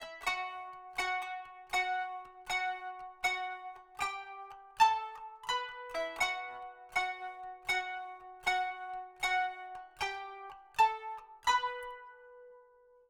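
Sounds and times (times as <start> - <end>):
kanun playing: 0.0 - 12.6.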